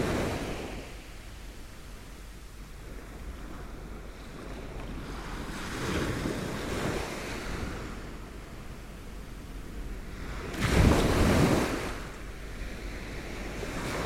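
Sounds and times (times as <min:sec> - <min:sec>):
strong waves on a sandy beach: 0:00.0 - 0:01.0, 0:02.8 - 0:08.5, 0:09.7 - 0:14.0.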